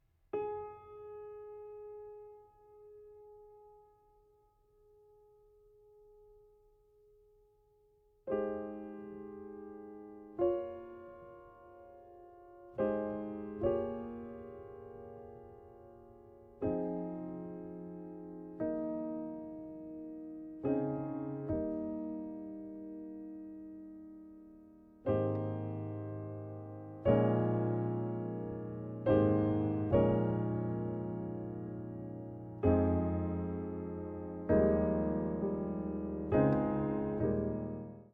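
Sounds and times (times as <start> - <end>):
piano: 0.0 - 38.1.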